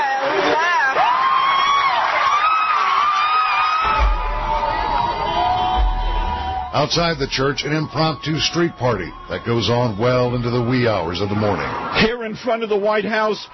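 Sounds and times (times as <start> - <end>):
church audience cheering wildly: 0.0 - 13.5
low thumping: 3.8 - 10.7
speech: 6.8 - 13.5.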